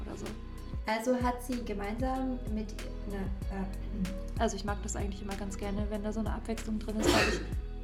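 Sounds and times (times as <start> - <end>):
speech: 0.2 - 7.6
sneeze: 7.0 - 7.5.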